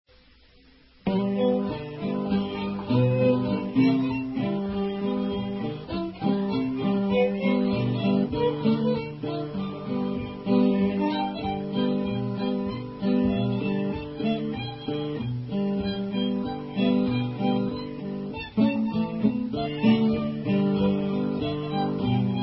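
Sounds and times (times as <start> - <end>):
blues music: 0.2 - 22.4.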